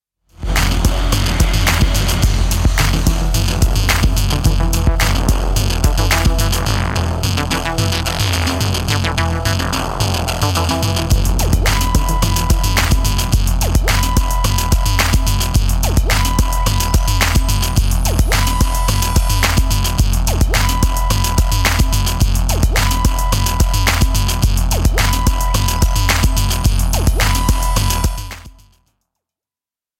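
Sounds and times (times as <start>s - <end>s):
instrumental music: 0.4s - 28.6s.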